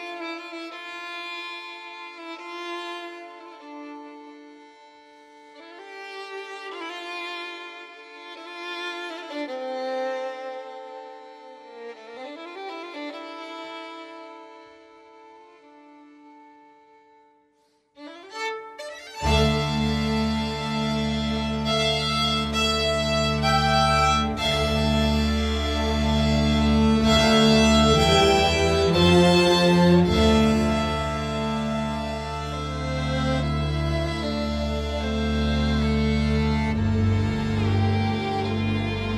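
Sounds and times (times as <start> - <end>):
kamancheh playing: 18.2 - 39.1.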